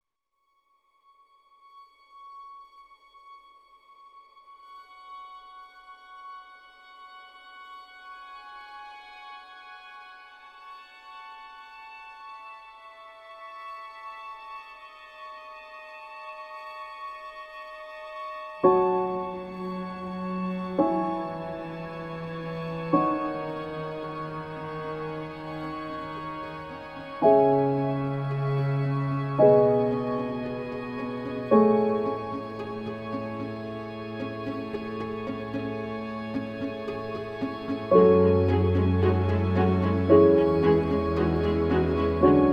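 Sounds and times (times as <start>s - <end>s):
emotional melancholy background music: 11.8s - 42.5s.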